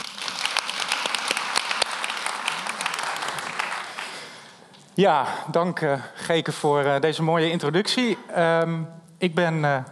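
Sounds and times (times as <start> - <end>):
audience applause: 0.0 - 4.6
speech: 5.0 - 9.9.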